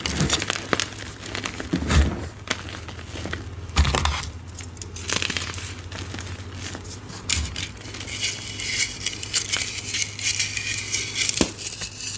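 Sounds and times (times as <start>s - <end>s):
low steady hum: 0.0s - 12.1s
dyed gym chalk crushed: 5.0s - 12.1s.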